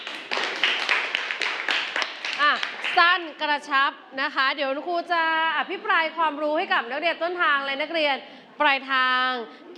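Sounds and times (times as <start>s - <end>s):
group clapping: 0.0s - 3.3s
speech: 2.6s - 9.7s.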